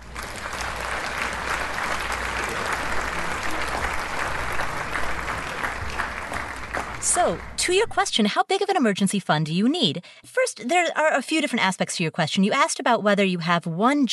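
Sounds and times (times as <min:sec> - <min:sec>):
round of applause: 0:00.0 - 0:07.6
speech: 0:07.1 - 0:14.1.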